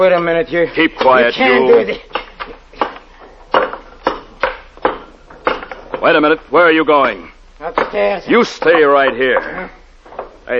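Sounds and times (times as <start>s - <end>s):
speech: 0.0s - 2.2s, 6.0s - 9.8s
crowbar knocking down a brick wall: 2.1s - 6.1s.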